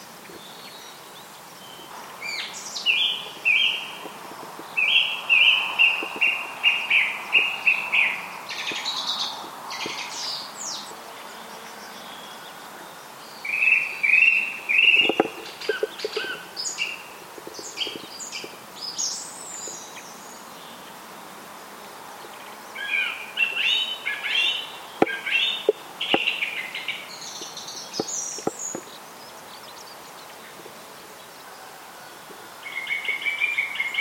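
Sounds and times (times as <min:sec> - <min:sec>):
song thrush: 0:00.0 - 0:33.9.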